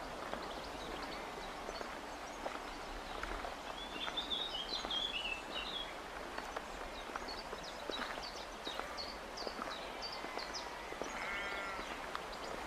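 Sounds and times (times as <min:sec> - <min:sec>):
footsteps walking: 0:00.2 - 0:12.6.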